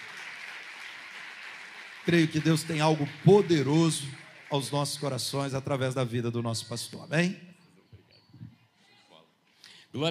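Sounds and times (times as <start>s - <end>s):
audience applause: 0.0s - 5.4s
speech: 2.0s - 7.5s.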